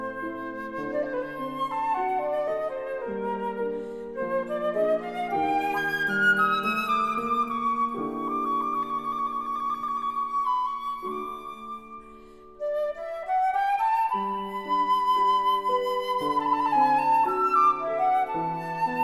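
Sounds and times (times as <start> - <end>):
flute recital: 0.0 - 19.0.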